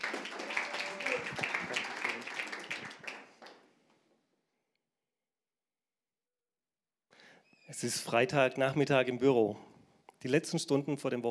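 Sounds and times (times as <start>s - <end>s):
audience applause: 0.0s - 3.6s
speech: 7.7s - 11.2s.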